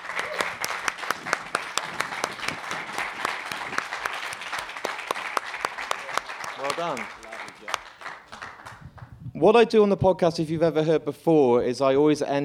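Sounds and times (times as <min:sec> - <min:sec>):
audience applause: 0:00.0 - 0:09.1
speech: 0:06.8 - 0:07.2, 0:09.4 - 0:12.4.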